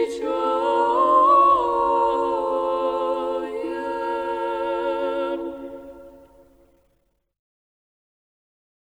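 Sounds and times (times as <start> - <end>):
liturgical chant: 0.0 - 6.8.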